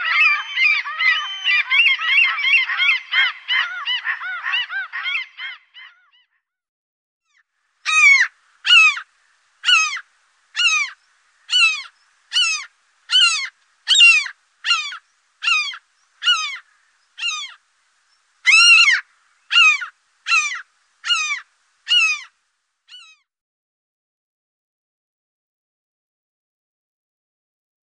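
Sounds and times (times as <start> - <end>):
common gulls calling in a dense chorus: 0.0 - 6.3, 7.3 - 17.7, 18.4 - 23.2.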